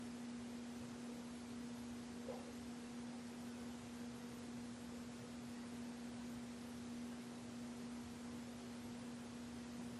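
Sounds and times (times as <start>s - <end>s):
ballroom static noise: 0.0s - 9.9s.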